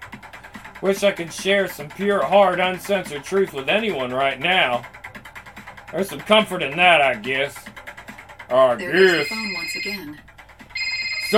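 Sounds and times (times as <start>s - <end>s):
speech: 0.8s - 5.0s, 5.9s - 7.7s, 8.5s - 10.2s
telephone ringing with a high electronic tone: 8.8s - 11.3s.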